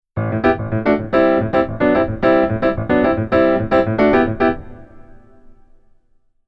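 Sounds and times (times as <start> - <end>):
keyboard: 0.2 - 6.1.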